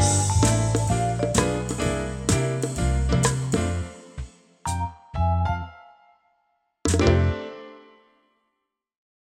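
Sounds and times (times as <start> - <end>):
backing track: 0.0 - 5.7.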